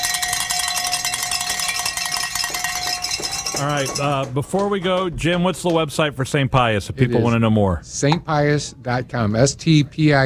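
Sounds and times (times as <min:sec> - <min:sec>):
bells ringing: 0:00.0 - 0:04.6
speech: 0:03.6 - 0:10.2.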